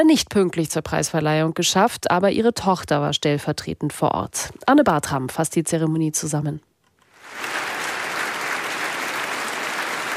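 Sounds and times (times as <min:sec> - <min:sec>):
speech: 0:00.0 - 0:06.7
large crowd applauding at an award ceremony: 0:07.2 - 0:10.1.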